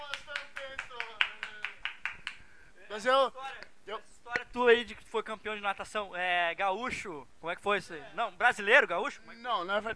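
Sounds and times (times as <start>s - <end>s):
rhythmic clapping: 0.0s - 2.5s
speech: 3.0s - 9.9s.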